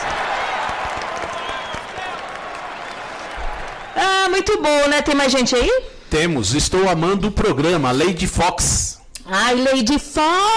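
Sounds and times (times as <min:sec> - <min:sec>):
applause: 0:00.0 - 0:04.4
speech: 0:04.0 - 0:10.5.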